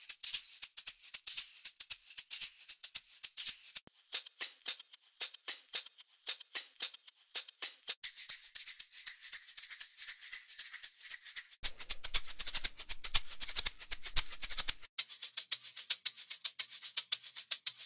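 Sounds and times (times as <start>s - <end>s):
amapiano shaker: 0.0s - 17.8s.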